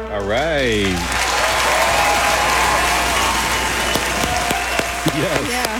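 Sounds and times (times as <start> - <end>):
audience applause: 0.2 - 5.7.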